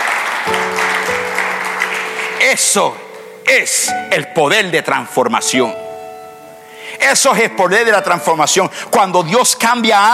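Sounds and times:
audience applause: 0.0s - 2.8s
sustained low organ or keyboard chord: 0.5s - 9.0s
speech: 2.5s - 6.0s, 7.0s - 10.1s.

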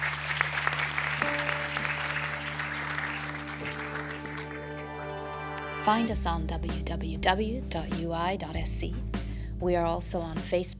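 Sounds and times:
audience round of applause: 0.0s - 5.7s
speech: 5.8s - 10.7s.

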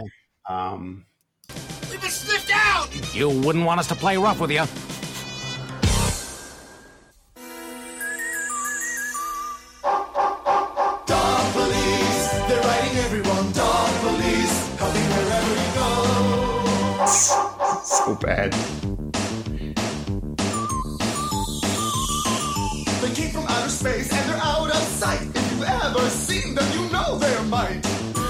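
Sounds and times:
speech: 0.0s - 1.1s, 1.9s - 5.0s, 18.2s - 19.2s
TV show theme song: 1.5s - 28.2s
dog-like barks and yips: 17.0s - 18.2s.

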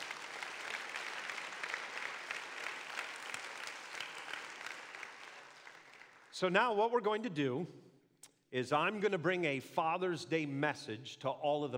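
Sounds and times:
audience applause for the dads at a Father's Day gathering: 0.0s - 6.3s
speech: 6.4s - 7.8s, 8.5s - 11.7s.

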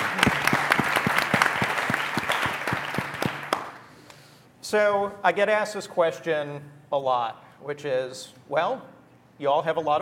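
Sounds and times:
audience applause for panelists: 0.0s - 3.8s
speech: 4.7s - 10.0s.

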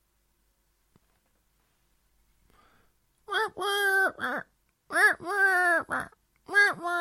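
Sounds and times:
person imitating a pigeon's cooing: 3.3s - 7.0s.

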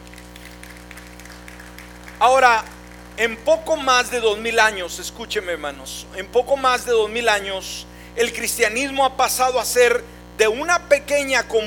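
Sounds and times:
audience applause: 0.0s - 3.4s
speech: 2.2s - 11.6s.

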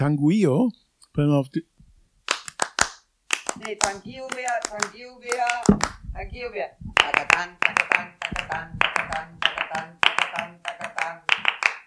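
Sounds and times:
speech: 0.0s - 1.7s, 3.6s - 11.3s
rhythmic flamenco hand clapping: 2.3s - 6.0s, 7.0s - 11.8s.

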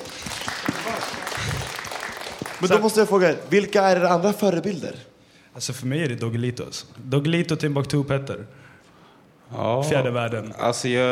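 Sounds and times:
audience applause: 0.0s - 3.2s
speech: 2.6s - 8.6s, 9.5s - 11.1s.

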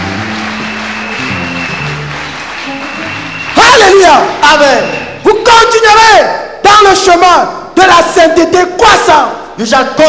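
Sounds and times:
sustained low tones: 0.0s - 3.6s
church congregation clapping and cheering for Jesus during a French-English worship service: 0.0s - 5.9s
speech: 4.1s - 10.0s.

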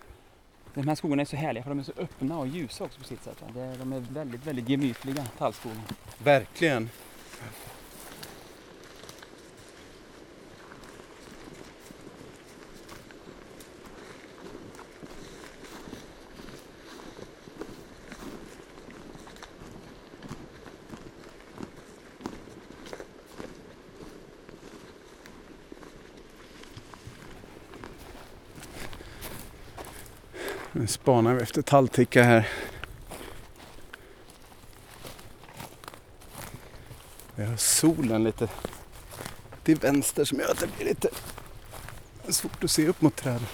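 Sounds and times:
footsteps walking over the floor of an open pine forest: 0.0s - 8.6s, 26.7s - 43.5s
speech: 0.8s - 7.8s, 30.9s - 32.7s, 37.6s - 38.7s, 39.7s - 41.4s, 42.3s - 43.5s.

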